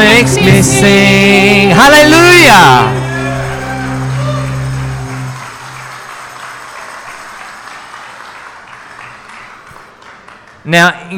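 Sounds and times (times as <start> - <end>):
speech: 0.2 - 2.9, 10.7 - 11.1
audience applause after a worship song: 3.1 - 11.1.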